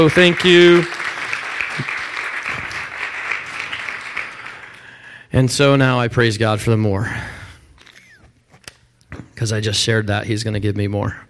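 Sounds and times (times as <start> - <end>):
speech: 0.0 - 1.0, 5.4 - 7.3, 9.4 - 11.2
audience hand clapping: 0.0 - 5.1.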